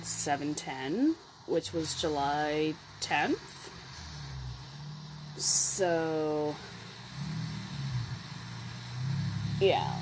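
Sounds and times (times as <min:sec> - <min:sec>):
street traffic engine rumble through thin windows: 0:00.0 - 0:10.0
speech: 0:00.2 - 0:03.8, 0:05.4 - 0:07.4, 0:09.6 - 0:10.0.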